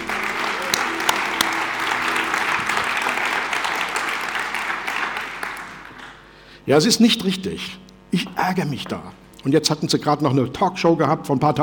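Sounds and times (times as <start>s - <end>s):
audience applause: 0.0s - 6.4s
speech: 6.7s - 11.6s.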